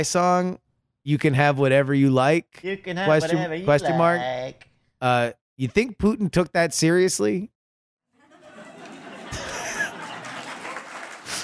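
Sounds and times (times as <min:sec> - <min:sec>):
speech: 0:00.0 - 0:07.5
people laughing: 0:08.2 - 0:11.4
crowd applauding after a joke: 0:08.3 - 0:11.4.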